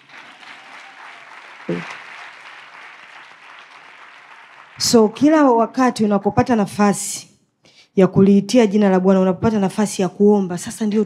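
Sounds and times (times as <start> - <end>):
faint applause from a worship gathering: 0.0 - 4.8
speech: 1.7 - 2.0, 4.8 - 7.3, 8.0 - 11.0.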